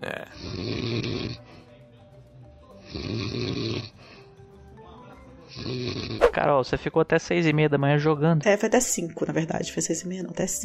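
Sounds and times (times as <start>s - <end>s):
loud snoring: 0.3s - 1.5s, 2.8s - 4.0s, 5.5s - 6.4s
speech: 6.4s - 10.6s.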